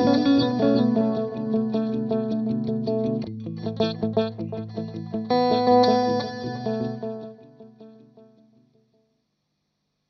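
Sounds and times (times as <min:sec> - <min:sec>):
looper effects send: 0:00.0 - 0:07.1.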